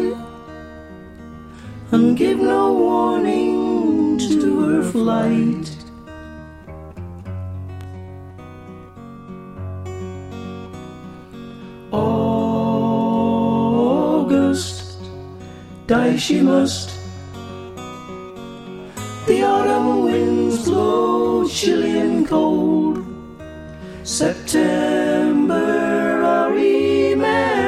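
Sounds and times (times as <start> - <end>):
mezzo choir singing harmonies: 0.0 - 0.4, 1.9 - 5.8, 11.9 - 14.9, 15.9 - 17.0, 18.9 - 27.6.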